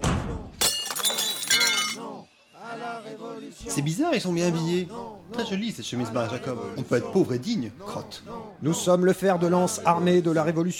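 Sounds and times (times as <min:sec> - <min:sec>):
Audi car glass being smashed: 0:00.6 - 0:02.0
glass shards tinkling: 0:00.6 - 0:02.0
speech: 0:03.1 - 0:10.7.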